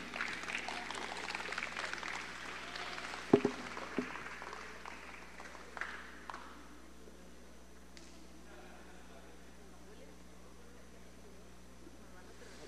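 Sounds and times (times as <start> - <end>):
audience applause: 0.0 - 6.5.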